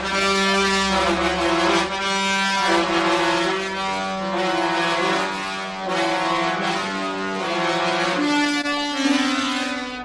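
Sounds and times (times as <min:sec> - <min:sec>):
trumpet: 0:00.0 - 0:10.0.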